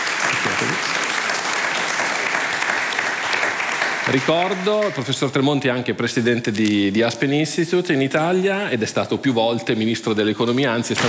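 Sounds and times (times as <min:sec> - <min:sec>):
audience applause: 0:00.0 - 0:05.4
speech: 0:04.1 - 0:11.0.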